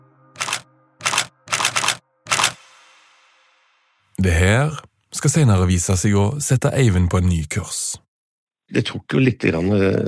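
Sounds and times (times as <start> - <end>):
camera shutter clicking: 0.4 - 2.6
speech: 4.2 - 8.1, 8.7 - 10.0.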